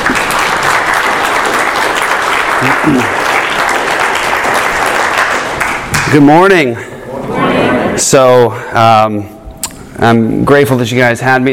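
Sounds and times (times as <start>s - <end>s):
audience applause welcoming a guest pastor at King's Church: 0.0s - 6.2s
speech: 2.8s - 3.2s, 6.1s - 7.4s, 8.0s - 9.4s, 10.0s - 11.5s.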